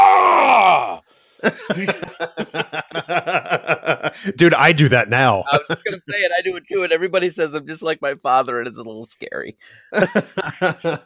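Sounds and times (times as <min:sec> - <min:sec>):
voice imitating an older man's groan of effort getting up: 0:00.0 - 0:01.0
rhythmic breathy laughter: 0:01.4 - 0:04.4, 0:05.5 - 0:06.3, 0:09.8 - 0:11.0
speech: 0:01.7 - 0:11.0.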